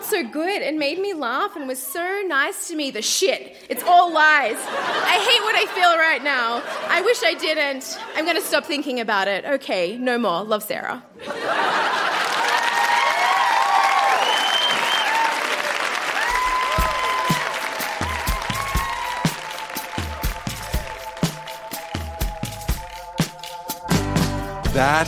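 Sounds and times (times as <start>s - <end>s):
speech: 0.1s - 11.7s, 24.8s - 25.0s
laughter: 3.8s - 8.8s, 11.2s - 13.0s
cheering: 11.4s - 21.4s
audience applause: 11.5s - 23.0s.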